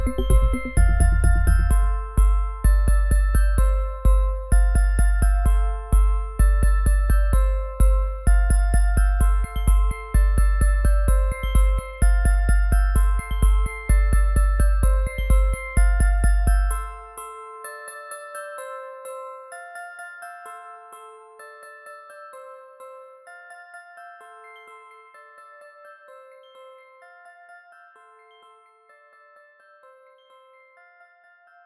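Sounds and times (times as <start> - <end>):
deep house mix: 0.0 - 2.2
glockenspiel: 0.0 - 31.6.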